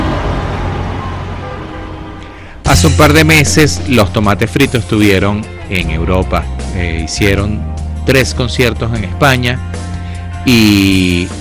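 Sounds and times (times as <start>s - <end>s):
approaching bus engine and road rumble: 0.0s - 4.6s
speech: 2.8s - 9.7s, 10.4s - 11.3s.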